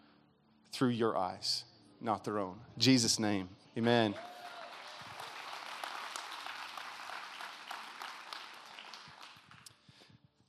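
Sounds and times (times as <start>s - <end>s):
speech: 0.8s - 4.4s
audience applause: 4.1s - 9.7s.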